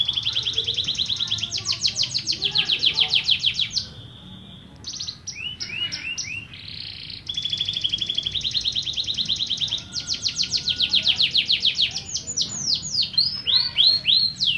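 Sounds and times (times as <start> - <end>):
Atlantic canary singing trills whistles and buzzy rattles: 0.0 - 14.5.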